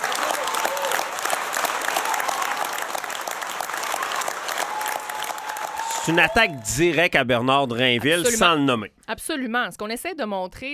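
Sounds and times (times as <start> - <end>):
audience ovation for a woman politician after her speech: 0.0 - 7.1
speech: 6.1 - 10.7.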